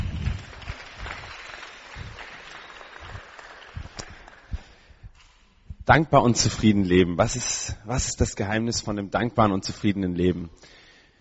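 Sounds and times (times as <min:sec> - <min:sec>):
applause: 0:00.0 - 0:04.9
speech: 0:05.9 - 0:10.8.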